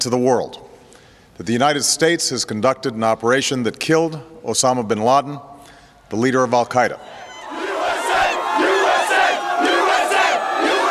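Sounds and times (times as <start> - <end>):
speech: 0.0 - 0.6, 1.4 - 5.5, 6.1 - 7.2
large crowd cheering in streets celebrating: 7.0 - 10.8.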